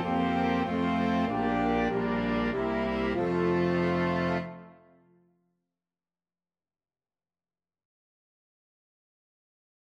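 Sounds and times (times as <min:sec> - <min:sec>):
orchestra: 0:00.0 - 0:05.0.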